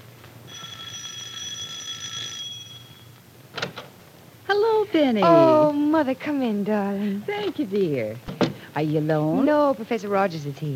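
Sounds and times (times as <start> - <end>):
low hum: 0.0 - 10.7
buzzing doorbell: 0.5 - 3.2
speech: 4.9 - 10.7.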